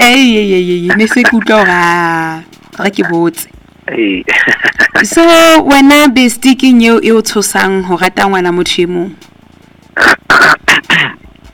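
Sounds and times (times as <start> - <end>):
speech: 0.1 - 9.3, 10.0 - 10.2
throat clearing by a person: 10.0 - 11.3.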